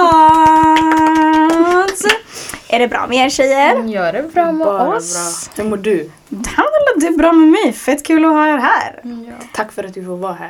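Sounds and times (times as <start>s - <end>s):
applause: 0.0s - 2.2s
speech: 2.8s - 10.4s.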